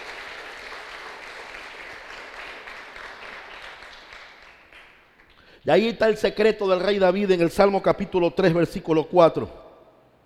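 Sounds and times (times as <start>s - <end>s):
audience applauding: 0.0s - 5.4s
speech: 5.6s - 9.6s.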